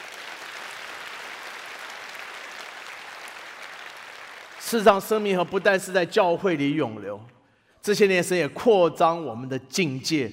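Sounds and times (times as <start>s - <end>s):
audience applauding: 0.0s - 5.8s
speech: 4.7s - 10.3s.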